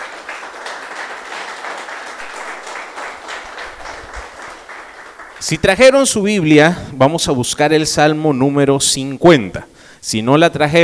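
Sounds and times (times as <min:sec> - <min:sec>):
audience applause: 0:00.0 - 0:05.8
speech: 0:05.4 - 0:10.8.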